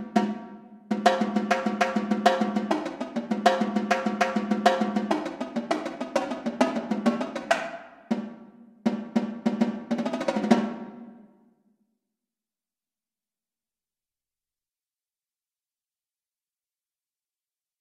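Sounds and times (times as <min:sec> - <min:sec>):
drumline tenor drums: 0:00.0 - 0:11.1.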